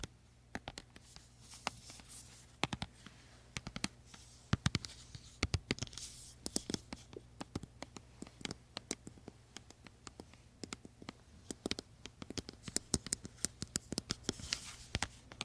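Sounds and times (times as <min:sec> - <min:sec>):
creamy products being worked by hand: 0:03.5 - 0:15.4.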